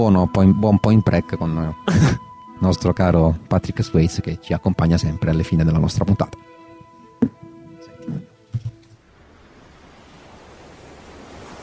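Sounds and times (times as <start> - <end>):
speech: 0.0 - 6.5
ocean waves breaking: 9.0 - 11.6.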